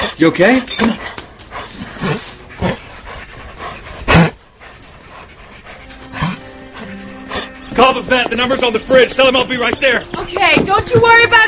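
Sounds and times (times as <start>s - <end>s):
dog panting in distress: 0.0s - 11.4s
speech: 0.1s - 1.2s, 7.8s - 11.4s
dog whimpering: 4.1s - 7.8s.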